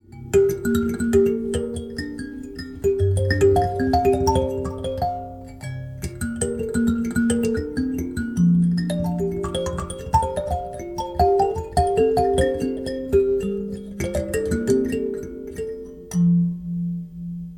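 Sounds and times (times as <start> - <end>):
mbira: 0.0 - 17.5.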